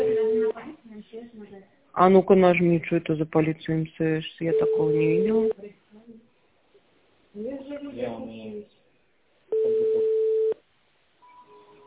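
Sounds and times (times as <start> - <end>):
telephone ringback tone while a call is placed: 0.0 - 0.5, 4.5 - 5.5, 9.5 - 10.6, 11.2 - 11.8
speech: 2.0 - 5.8, 7.4 - 8.7.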